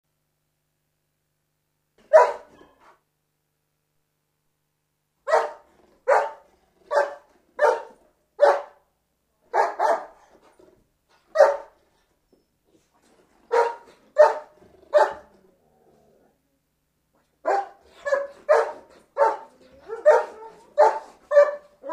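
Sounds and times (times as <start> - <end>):
dog barking: 2.0 - 3.0, 5.3 - 8.8, 9.5 - 10.3, 11.3 - 11.8, 13.5 - 15.3, 17.4 - 21.9.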